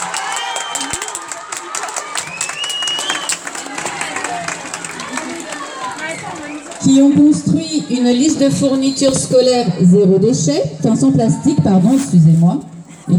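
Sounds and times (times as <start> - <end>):
audience applauding teachers: 0.0 - 7.1
speech: 6.9 - 13.1.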